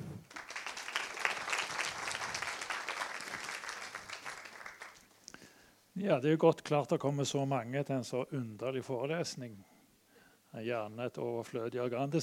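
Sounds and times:
audience applause: 0.2 - 5.1
speech: 6.0 - 9.7, 10.6 - 12.2.

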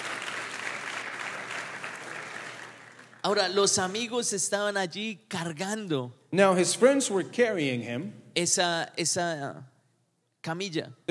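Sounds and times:
congregation applause at a bilingual church service: 0.0 - 4.0
speech: 3.2 - 9.7, 10.4 - 11.1.

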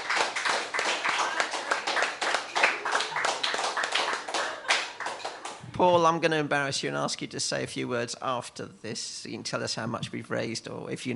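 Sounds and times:
small audience applause at a charity poetry-reading marathon: 0.0 - 5.6
speech: 5.8 - 11.1.

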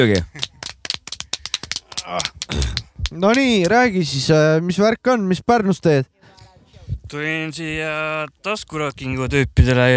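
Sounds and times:
speech: 0.0 - 0.4, 2.1 - 6.2, 7.1 - 9.9
one-handed applause: 0.0 - 3.9.

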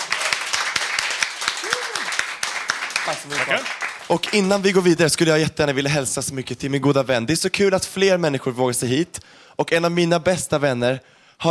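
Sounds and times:
audience applause: 0.0 - 5.0
speech: 3.1 - 11.4.

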